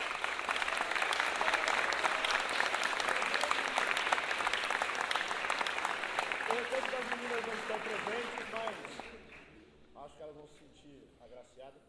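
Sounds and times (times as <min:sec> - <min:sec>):
audience applause: 0:00.0 - 0:09.5.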